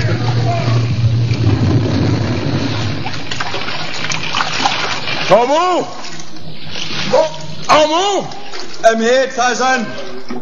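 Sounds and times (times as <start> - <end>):
sea water churning and splashing: 1.1 - 10.4
speech: 5.3 - 6.2, 7.1 - 10.4.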